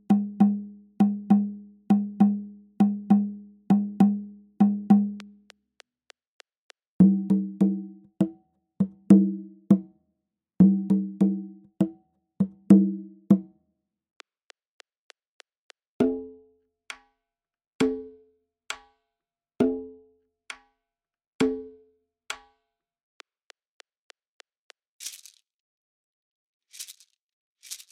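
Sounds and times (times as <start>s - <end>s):
Latin American yanvalou rhythm at 100 bpm: 0.0s - 5.6s, 7.0s - 9.9s, 10.6s - 13.5s.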